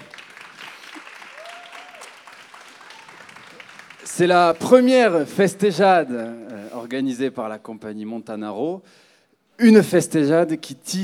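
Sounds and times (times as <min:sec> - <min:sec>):
audience applause: 0:00.0 - 0:05.2
faint whistle or cheer: 0:01.2 - 0:02.2
speech: 0:04.2 - 0:09.0, 0:09.6 - 0:11.0.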